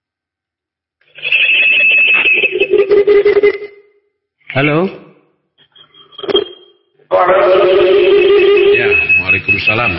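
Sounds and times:
telephone ringing: 0:01.1 - 0:03.9, 0:06.1 - 0:09.9
speech: 0:04.6 - 0:05.0, 0:09.6 - 0:09.9.

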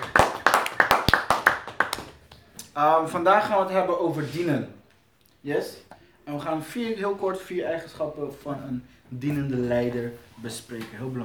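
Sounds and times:
small audience clapping at a talk on servant leadership: 0:00.0 - 0:02.7
speech: 0:02.8 - 0:04.8, 0:05.4 - 0:11.2.

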